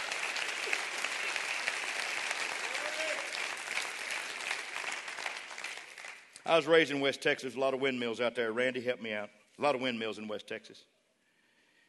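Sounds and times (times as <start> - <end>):
crowd clapping hands: 0.0 - 6.6
speech: 6.5 - 10.9.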